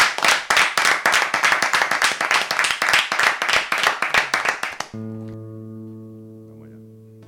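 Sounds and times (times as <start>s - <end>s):
audience applause: 0.0s - 5.0s.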